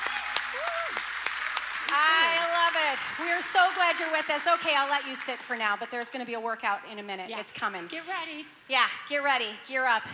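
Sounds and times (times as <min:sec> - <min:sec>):
high cheer or whoop: 0:00.0 - 0:04.3
crowd applauding: 0:00.0 - 0:05.9
speech: 0:03.0 - 0:10.1.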